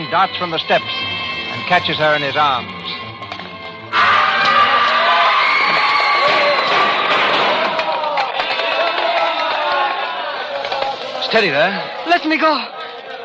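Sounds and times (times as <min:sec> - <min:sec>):
speech: 0:00.1 - 0:02.8, 0:11.3 - 0:13.2
screaming hysterical mob in streets: 0:03.9 - 0:11.0.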